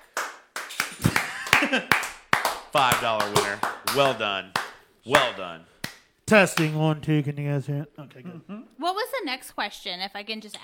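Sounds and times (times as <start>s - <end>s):
round of applause hand claps: 0.0s - 6.8s
speech: 1.7s - 2.1s, 2.8s - 5.7s, 6.3s - 10.6s.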